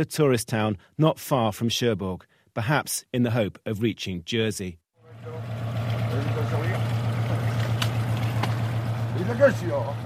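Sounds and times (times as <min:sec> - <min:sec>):
speech: 0:00.0 - 0:05.4, 0:09.3 - 0:10.0
engine hum: 0:05.0 - 0:10.0
water lapping in harbour: 0:05.1 - 0:10.0.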